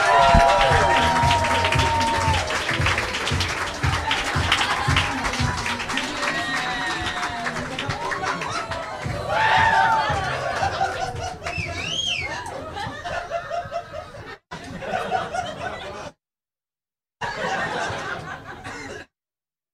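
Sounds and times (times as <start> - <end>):
live comedy show audience clapping: 0.0 - 13.0
crowd chatter: 0.0 - 13.2
laughter: 0.0 - 16.2, 17.2 - 19.1.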